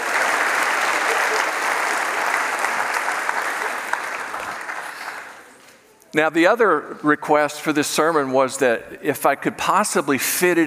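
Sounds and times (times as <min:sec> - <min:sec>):
audience applause: 0:00.0 - 0:05.6
speech: 0:06.1 - 0:10.6.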